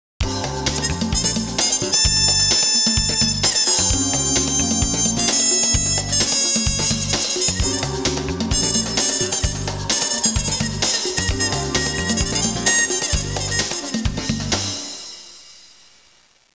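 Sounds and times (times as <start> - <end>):
jazz music ringtone: 0.2 - 15.9.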